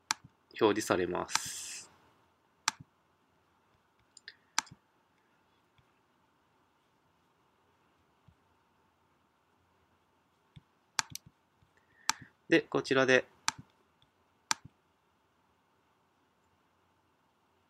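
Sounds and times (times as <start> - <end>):
computer mouse clicks on a button: 0.0 - 0.3, 1.3 - 1.5, 2.7 - 2.9, 4.0 - 4.8, 10.6 - 11.4, 12.0 - 12.3, 13.4 - 14.7
speech: 0.6 - 1.7, 12.5 - 13.4.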